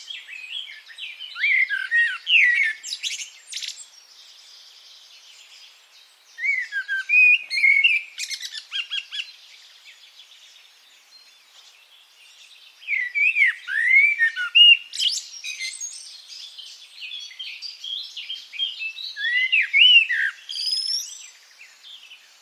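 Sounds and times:
bird singing a fast varied warble: 0.0s - 22.4s.

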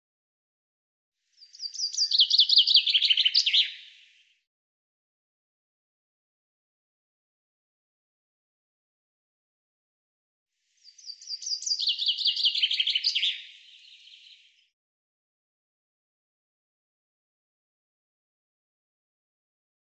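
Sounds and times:
bird delivering a rapid high-pitched chirping trill: 1.4s - 3.9s, 10.8s - 14.5s.

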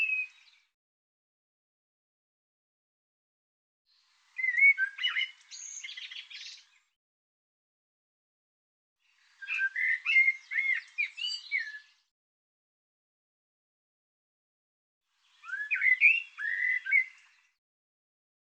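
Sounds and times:
bird song: 0.0s - 0.7s, 3.9s - 6.9s, 9.0s - 12.1s, 15.2s - 17.6s.

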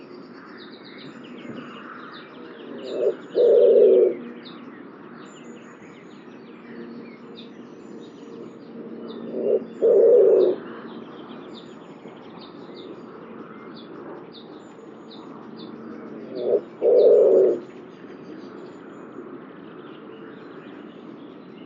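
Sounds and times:
bird cooing: 1.4s - 4.3s, 9.1s - 10.7s, 16.0s - 17.7s.

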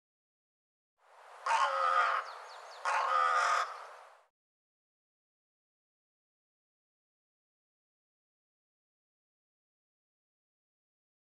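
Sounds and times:
bird raspy caws: 1.4s - 4.0s.

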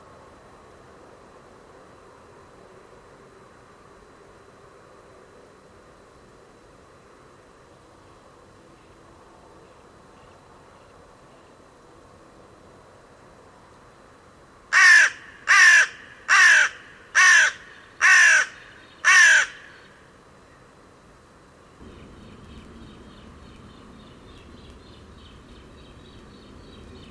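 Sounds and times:
bird giving harsh crow-like caws: 14.7s - 19.9s.

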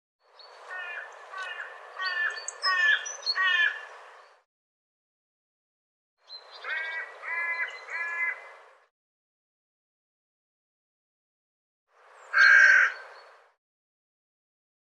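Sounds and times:
bird giving hoarse squawking caws: 0.7s - 3.9s, 6.5s - 8.5s, 12.3s - 13.3s.

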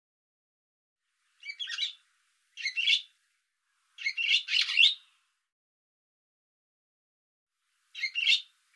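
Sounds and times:
bird uttering rapid scratchy high-pitched chatter: 1.4s - 2.0s, 2.6s - 3.1s, 4.0s - 5.0s, 8.0s - 8.5s.

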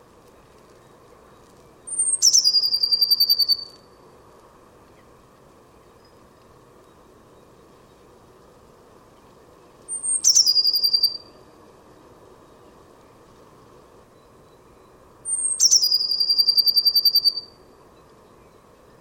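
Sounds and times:
quiet hum: 0.0s - 18.9s
bird calling: 1.9s - 3.8s, 9.9s - 11.4s, 15.3s - 17.6s.

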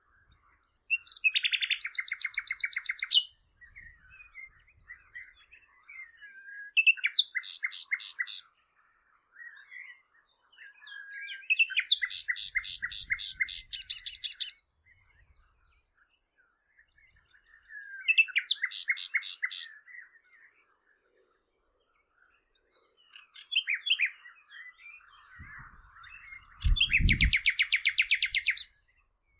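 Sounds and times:
bird song with chattering trills: 0.0s - 29.3s.

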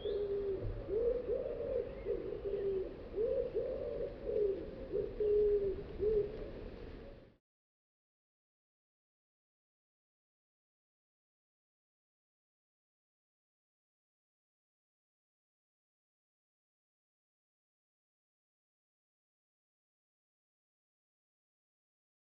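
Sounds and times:
bird giving low mellow cooing notes: 0.0s - 6.6s.

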